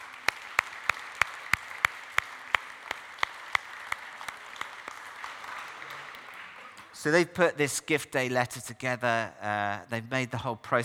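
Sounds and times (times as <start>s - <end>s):
applause in steady rhythm: 0.0s - 7.0s
speech: 7.0s - 10.8s.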